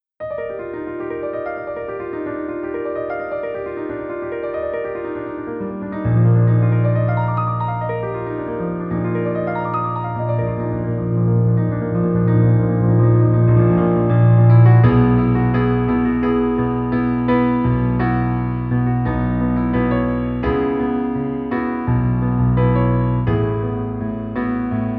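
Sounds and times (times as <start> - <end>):
piano: 0.0 - 24.9.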